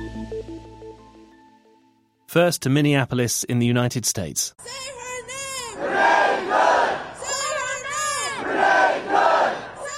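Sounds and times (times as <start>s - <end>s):
speech: 2.3s - 5.0s
hundreds of people chanting at vigil: 5.7s - 9.9s.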